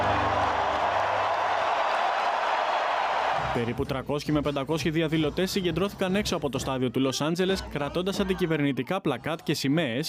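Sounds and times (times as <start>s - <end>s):
stadium crowd applauding warmly: 0.0s - 3.8s
speech: 3.6s - 10.0s.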